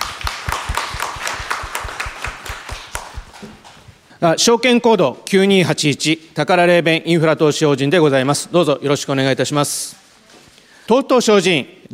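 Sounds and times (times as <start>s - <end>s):
crowd applause welcoming speaker: 0.0s - 3.5s
speech: 4.2s - 10.0s, 10.9s - 11.9s.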